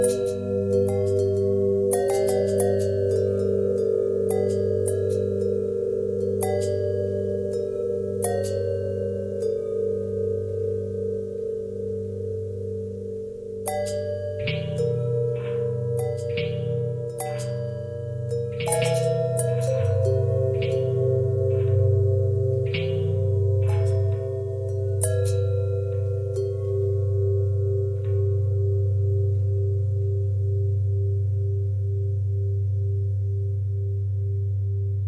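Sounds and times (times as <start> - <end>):
long bell harmonic twisting: 0.0 - 34.0.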